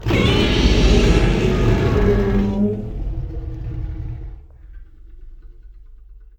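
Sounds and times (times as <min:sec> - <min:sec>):
Godzilla roar: 0:00.0 - 0:04.7.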